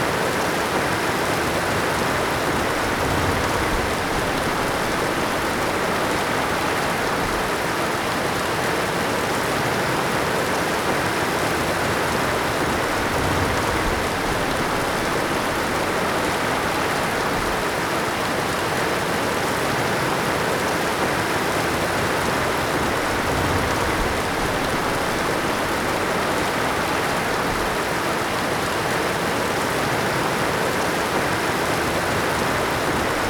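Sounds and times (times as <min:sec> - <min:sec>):
constant rain: 0:00.0 - 0:33.2.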